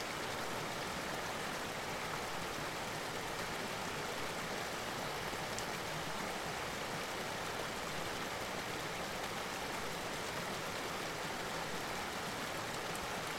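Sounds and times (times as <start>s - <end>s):
river waterfall: 0.0s - 13.3s.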